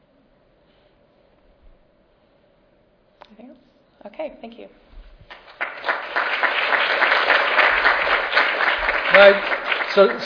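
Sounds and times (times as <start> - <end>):
speech: 3.5 - 4.9, 9.2 - 10.2
audience applause: 5.3 - 10.2.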